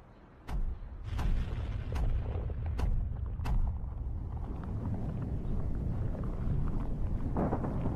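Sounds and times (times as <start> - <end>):
building demolition explosive charges banging: 0.5 - 3.9
wind noise: 0.5 - 7.9
building collapsing rumble: 1.0 - 7.9.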